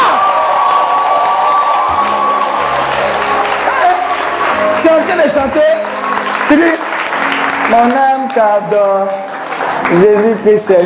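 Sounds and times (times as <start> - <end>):
church congregation cheering and whooping during a worship service: 0.0 - 8.2
speech: 5.4 - 5.9, 6.5 - 6.9, 7.7 - 9.2, 9.9 - 10.8.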